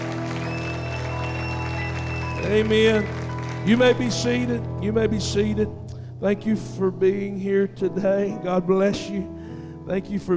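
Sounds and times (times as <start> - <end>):
audience applause and hand clapping: 0.0 - 4.5
speech: 2.4 - 10.3.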